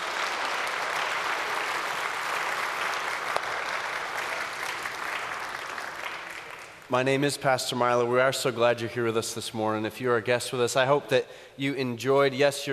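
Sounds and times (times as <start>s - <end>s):
audience applause: 0.0s - 6.9s
speech: 6.9s - 12.7s.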